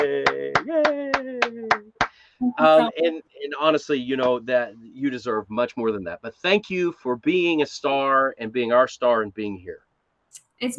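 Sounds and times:
laughter: 0.0 - 1.9, 2.6 - 6.3
sharp hand claps: 0.0 - 2.9, 4.2 - 4.5
person's sustained voiced tone: 0.0 - 9.4
speech: 2.6 - 9.9, 10.6 - 10.7.

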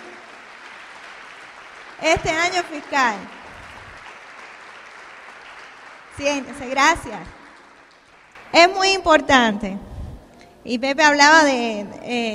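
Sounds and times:
audience applause: 0.0 - 8.5
speech: 2.0 - 3.4, 6.2 - 7.4, 8.5 - 9.9, 10.6 - 12.3.

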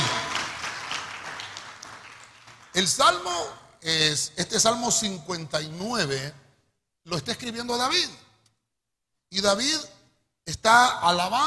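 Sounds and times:
clapping hands: 0.0 - 2.9
speech: 2.8 - 6.4, 7.1 - 8.2, 9.3 - 9.9, 10.5 - 11.4.

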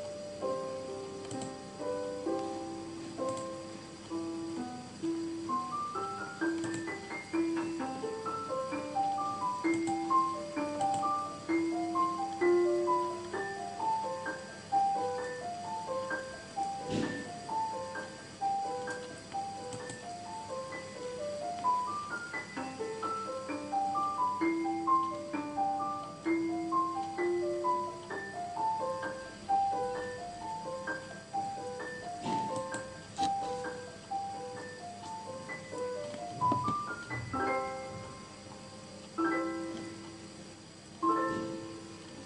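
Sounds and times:
gentle flowing piano melody: 0.0 - 42.2
brief sharp knocks: 16.9 - 17.3.

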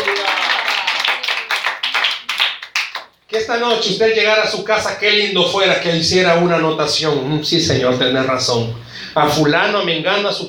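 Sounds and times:
audience applause: 0.0 - 3.1
speech: 3.3 - 10.4.

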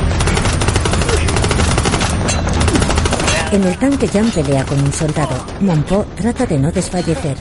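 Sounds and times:
rapid automatic gunfire in a Korean War film battle: 0.1 - 5.6
speech: 3.5 - 7.3.

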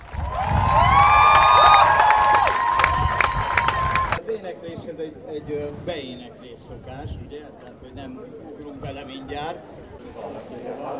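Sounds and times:
audience clapping: 0.0 - 4.2
high sustained whoops and shouts: 0.1 - 4.2
speech: 6.7 - 10.9.

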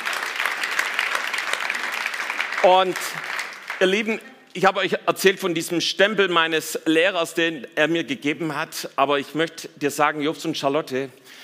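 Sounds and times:
audience applause: 0.0 - 4.2
speech: 2.6 - 11.4.

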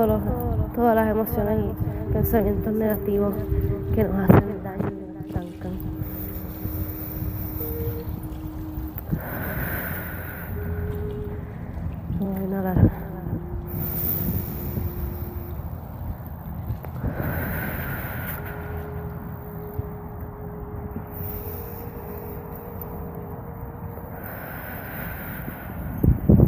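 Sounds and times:
speech: 0.0 - 4.9
soft sustained musical drone: 0.0 - 26.4
slow deep breathing exercise: 5.9 - 12.0, 13.4 - 26.4.

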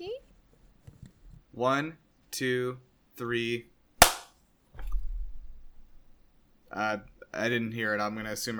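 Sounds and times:
speech: 1.6 - 3.7, 6.7 - 8.5
hand clap for recording sync: 4.0 - 4.3.

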